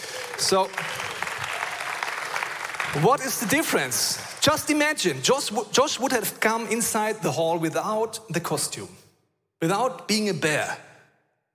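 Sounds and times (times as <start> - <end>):
audience applause: 0.0 - 5.2
speech: 0.4 - 1.1, 2.9 - 9.0, 9.6 - 10.9.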